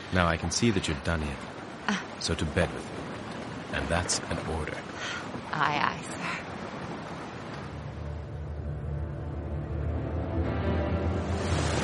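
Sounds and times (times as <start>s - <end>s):
wind buffeting small boat: 0.0s - 9.4s
rough sea: 0.0s - 11.8s
speech: 0.1s - 6.7s.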